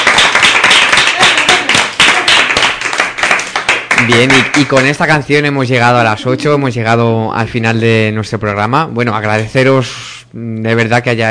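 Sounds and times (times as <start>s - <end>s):
crowd applauding: 0.0s - 5.0s
speech: 4.1s - 11.3s.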